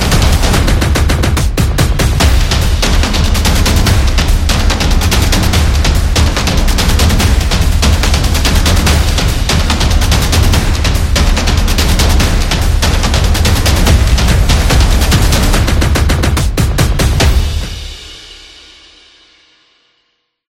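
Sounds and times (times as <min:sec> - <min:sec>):
tribal drums: 0:00.0 - 0:19.2.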